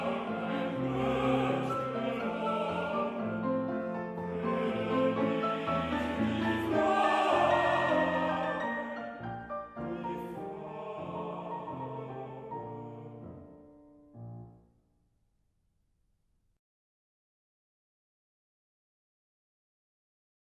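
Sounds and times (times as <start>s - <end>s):
waltz music: 0.0s - 14.6s.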